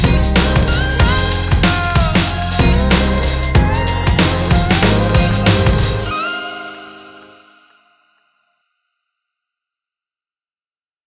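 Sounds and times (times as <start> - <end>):
hip hop music: 0.0 - 7.8.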